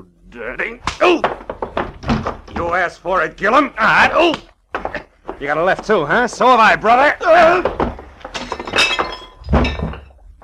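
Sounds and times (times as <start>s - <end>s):
speech: 0.0s - 1.5s, 2.2s - 4.5s, 5.4s - 7.8s
man crashing onto a coffee table: 1.0s - 2.8s, 7.3s - 10.1s
debris tinkling: 7.0s - 10.4s
glass breaking: 7.4s - 10.2s.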